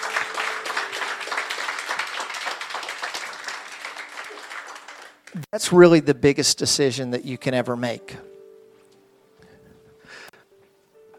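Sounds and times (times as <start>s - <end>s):
audience applause: 0.0s - 5.5s
speech: 5.3s - 8.3s.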